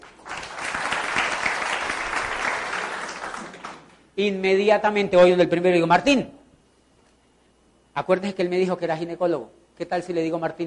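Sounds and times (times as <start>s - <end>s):
audience applause: 0.0s - 4.0s
speech: 4.2s - 6.4s, 8.0s - 10.6s.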